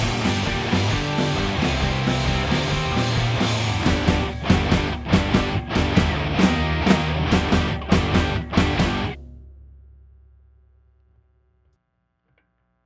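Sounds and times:
guitars: 0:00.0 - 0:09.2.

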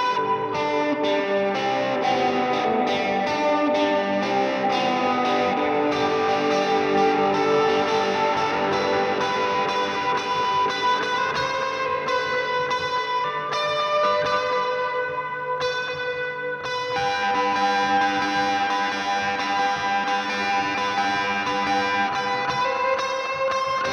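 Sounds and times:
guitar recorded with SM57 microphone: 0:00.0 - 0:23.9.

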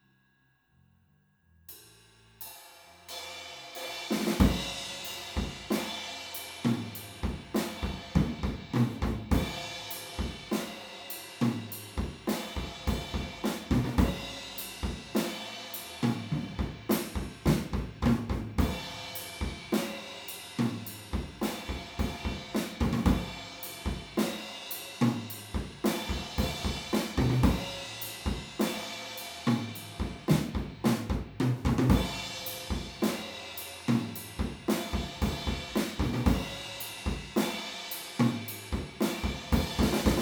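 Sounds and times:
drums recorded with PZM omni stereo microphones: 0:01.7 - 0:40.2.

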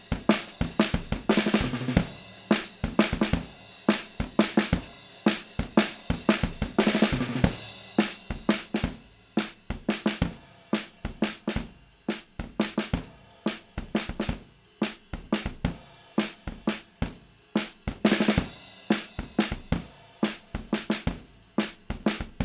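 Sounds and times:
snare drum hits: 0:00.0 - 0:17.0, 0:17.6 - 0:22.4.

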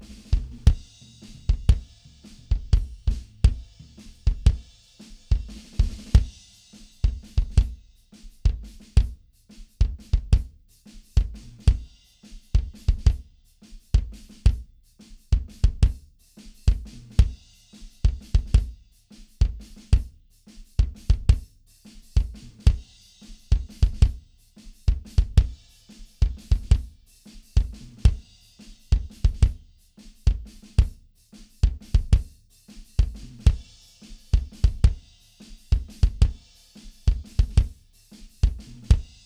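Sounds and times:
mono drums: 0:00.0 - 0:39.2.

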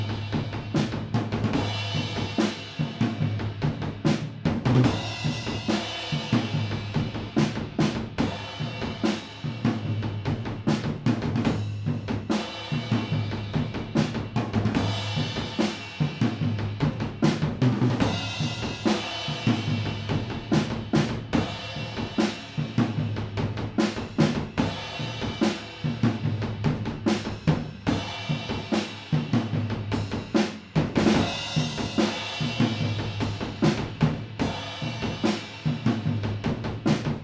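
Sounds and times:
drums: 0:00.0 - 0:37.2.

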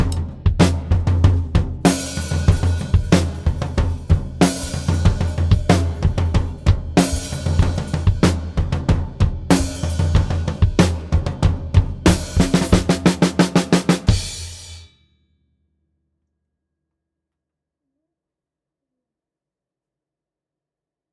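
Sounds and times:
drums: 0:00.0 - 0:14.9.

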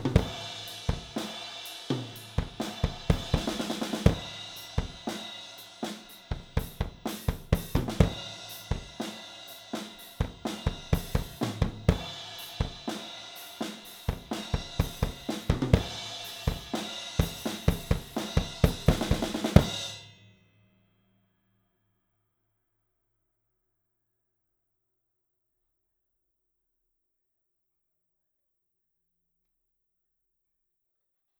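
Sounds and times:
drums: 0:00.0 - 0:20.3.

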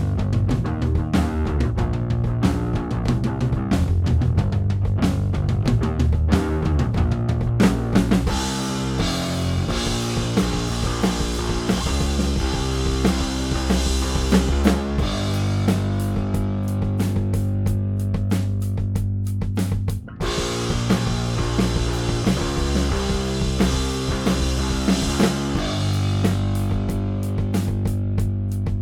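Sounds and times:
bass: 0:00.0 - 0:28.7
drums: 0:00.0 - 0:28.7.

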